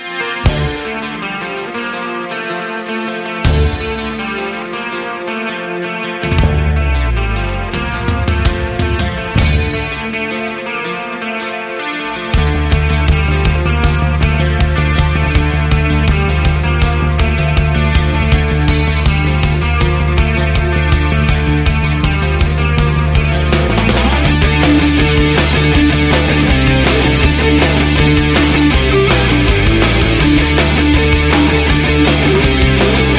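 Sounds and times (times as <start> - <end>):
distorted effects-laden guitars: 0.0 - 33.1
grandiose apocalyptic mystical rock song: 0.0 - 33.1
pounding bass and drums: 3.5 - 4.5, 6.2 - 10.3, 12.4 - 33.1.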